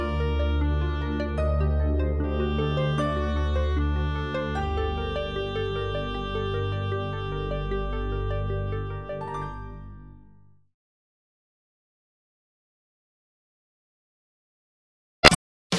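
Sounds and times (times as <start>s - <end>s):
easy listening and classical music: 0.0s - 10.4s.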